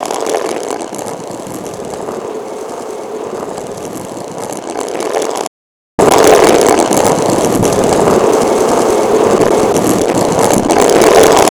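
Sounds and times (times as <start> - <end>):
stone rolling: 0.0 - 11.5.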